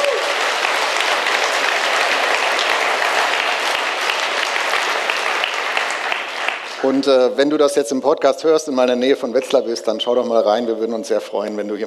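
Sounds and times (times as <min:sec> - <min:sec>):
audience clapping: 0:00.0 - 0:07.6
speech: 0:06.8 - 0:11.8.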